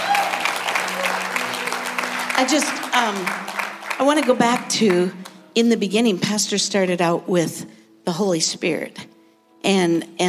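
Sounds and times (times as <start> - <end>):
audience clapping: 0.0 - 5.4
speech: 2.4 - 10.2.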